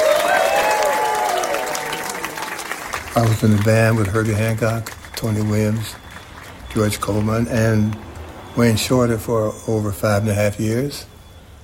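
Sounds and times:
audience applause on a stage: 0.0 - 8.3
speech: 3.2 - 6.0, 6.8 - 11.1.

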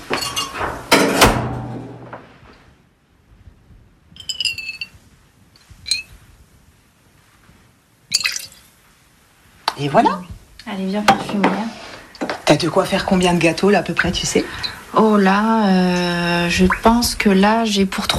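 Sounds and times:
glass clinks and taps: 0.1 - 0.6, 4.2 - 5.0, 5.9 - 6.1, 8.1 - 8.6
essential oil poured into a glass beaker and small flask: 8.1 - 8.7
soft drips of essential oil: 8.1 - 8.8
speech: 9.8 - 11.8, 12.5 - 18.1.

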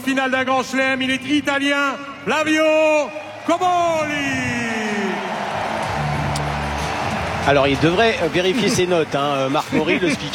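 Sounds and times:
speech: 0.0 - 4.6, 7.4 - 10.3
tennis crowd cheering at a Grand Slam final: 2.3 - 10.3
tennis crowd applauding at a Grand Slam final: 3.3 - 10.3.

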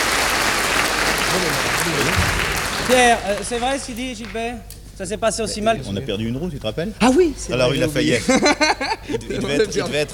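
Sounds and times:
audience clapping for a songwriter on a French TV show: 0.0 - 4.7
laughter: 1.0 - 3.8, 7.4 - 10.1
speech: 1.4 - 10.1.

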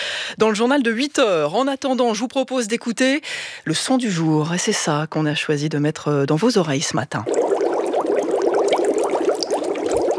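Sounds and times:
speech: 0.3 - 7.5
bubbles in water: 7.2 - 10.1.

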